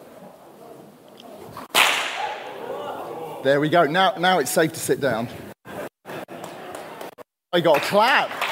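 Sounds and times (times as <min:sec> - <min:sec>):
bullwhip crack: 0:01.6 - 0:02.6
speech: 0:03.4 - 0:05.5, 0:07.6 - 0:08.4.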